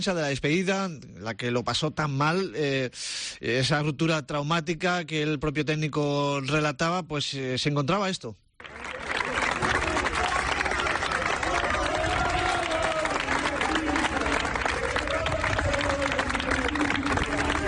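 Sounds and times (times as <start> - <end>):
speech: 0.0 - 8.4
fans applauding: 8.6 - 17.6
fans chanting: 9.6 - 17.6.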